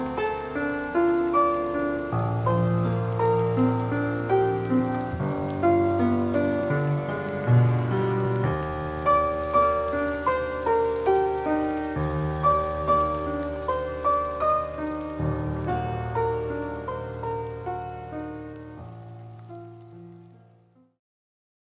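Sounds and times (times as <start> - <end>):
piano piece: 0.0 - 21.0.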